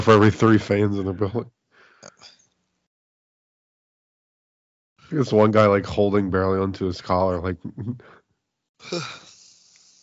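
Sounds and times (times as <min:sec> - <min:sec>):
speech: 0:00.0 - 0:02.3, 0:05.1 - 0:08.2, 0:08.8 - 0:09.3
person yawning: 0:08.8 - 0:09.7.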